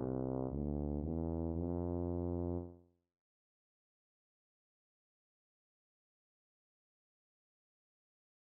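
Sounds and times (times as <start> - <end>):
slow lyrical C tuba etude: 0.0 - 2.9.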